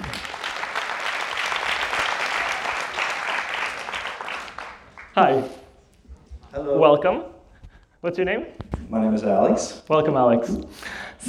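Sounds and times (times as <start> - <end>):
crowd applause: 0.0 - 5.7
speech: 5.2 - 5.6, 6.8 - 7.4, 8.0 - 11.2.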